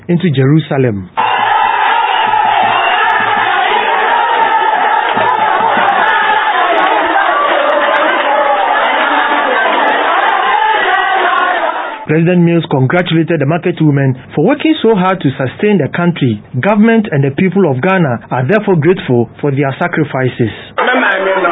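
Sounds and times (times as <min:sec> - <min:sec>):
speech: 0:00.1 - 0:01.2, 0:12.1 - 0:20.7
market traders in Ghana cheering to welcome President Mills: 0:01.2 - 0:12.1, 0:20.8 - 0:21.4.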